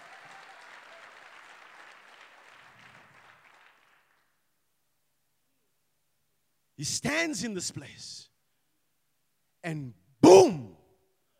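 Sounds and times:
audience clapping hands: 0.0s - 4.4s
speech: 6.8s - 8.3s, 9.6s - 10.0s.

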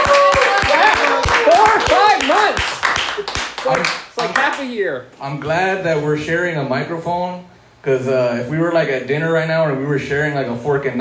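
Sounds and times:
excited voices whooping and calling out: 0.0s - 2.4s
small audience clapping: 0.0s - 4.7s
speech: 4.6s - 10.9s.

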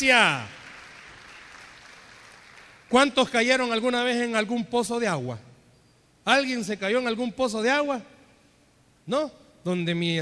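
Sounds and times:
speech: 0.0s - 0.6s, 2.9s - 5.5s, 6.3s - 8.1s, 9.1s - 10.2s
audience applause: 0.2s - 2.9s.

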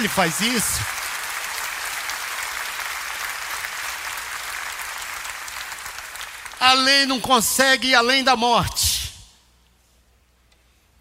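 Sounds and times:
speech: 0.0s - 1.0s, 6.6s - 9.0s
audience applause: 0.0s - 6.8s.

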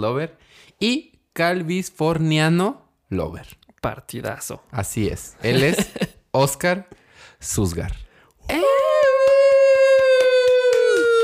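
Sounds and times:
speech: 0.0s - 8.8s
laughter: 5.4s - 6.2s
applause: 8.8s - 11.2s.

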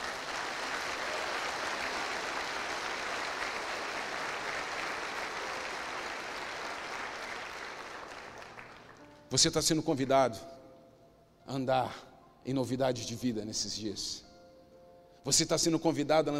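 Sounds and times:
audience applauding: 0.0s - 9.2s
speech: 9.3s - 10.6s, 11.5s - 14.2s, 15.2s - 16.3s.

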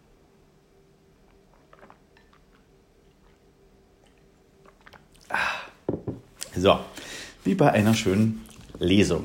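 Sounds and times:
person sipping water: 1.3s - 6.5s
speech: 6.6s - 9.2s.

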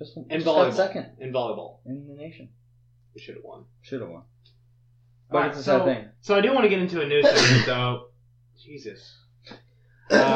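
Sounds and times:
speech: 0.0s - 2.6s, 3.2s - 4.4s, 5.3s - 10.3s
person sneezing: 7.2s - 7.8s.

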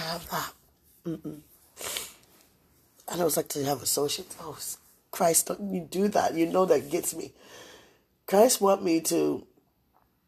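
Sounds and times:
speech: 0.2s - 1.9s, 3.1s - 7.7s, 8.3s - 9.5s
person sniffing: 1.7s - 2.3s.

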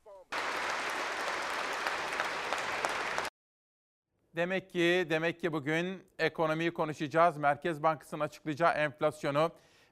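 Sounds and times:
standing ovation applause in parliament: 0.3s - 3.3s
speech: 4.4s - 9.8s.

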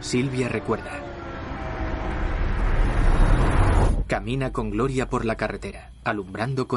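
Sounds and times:
speech: 0.0s - 1.1s, 4.1s - 6.7s
car engine approaching on a road at night: 0.0s - 4.0s.

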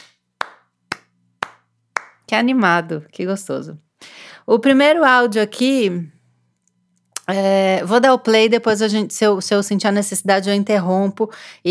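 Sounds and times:
hand clapping: 0.0s - 2.3s
speech: 2.3s - 3.8s, 4.5s - 6.2s, 7.3s - 11.6s.

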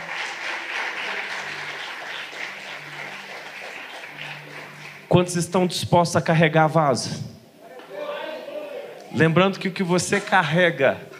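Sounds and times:
audience applause: 0.0s - 5.1s
speech: 5.1s - 7.4s, 9.2s - 11.1s.

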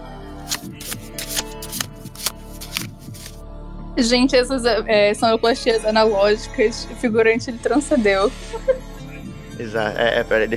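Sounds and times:
deck of cards shuffling: 0.4s - 3.4s
speech: 4.0s - 8.8s, 9.6s - 10.5s
laughter: 8.2s - 10.1s.

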